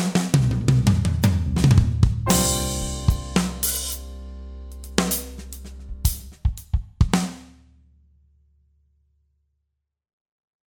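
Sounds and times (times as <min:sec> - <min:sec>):
pop drum fills: 0:00.0 - 0:07.6.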